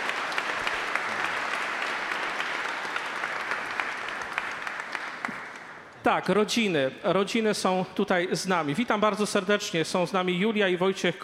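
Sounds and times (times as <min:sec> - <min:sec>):
audience applause: 0:00.0 - 0:05.9
speech: 0:06.1 - 0:11.2.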